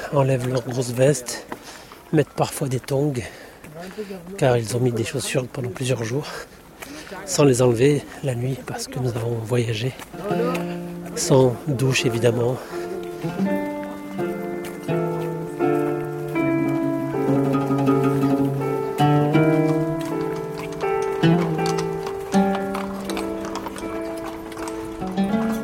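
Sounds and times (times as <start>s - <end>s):
hooves of a horse-drawn carriage clip-clopping on the street: 0.0s - 25.6s
speech: 0.1s - 13.6s
sustained melodic tones: 10.1s - 25.6s.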